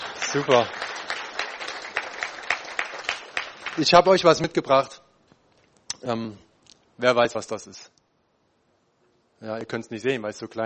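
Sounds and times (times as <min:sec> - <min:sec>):
audience applause: 0:00.0 - 0:04.4
speech: 0:00.3 - 0:00.8, 0:03.8 - 0:05.0, 0:06.0 - 0:08.0, 0:09.4 - 0:10.6.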